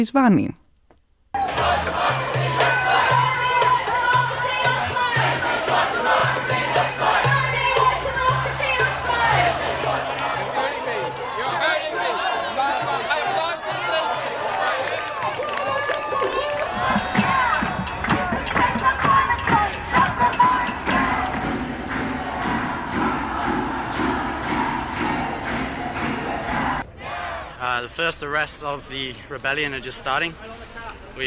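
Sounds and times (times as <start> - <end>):
speech: 0.0 - 0.6, 27.9 - 30.6
protest crowds shouting and chanting at demonstrations: 1.4 - 27.9.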